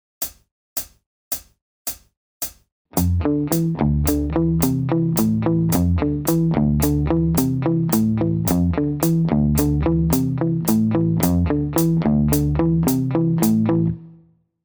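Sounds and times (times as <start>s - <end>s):
musical riff: 3.0s - 14.0s.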